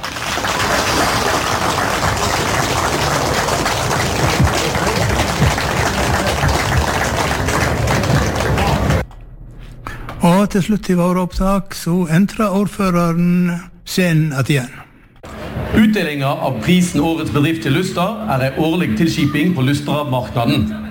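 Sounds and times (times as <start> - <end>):
audience applause: 0.0 - 9.0
speech: 10.5 - 14.8, 15.8 - 20.8.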